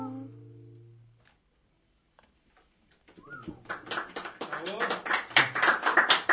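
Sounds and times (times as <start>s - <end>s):
audience applause: 3.2s - 6.3s.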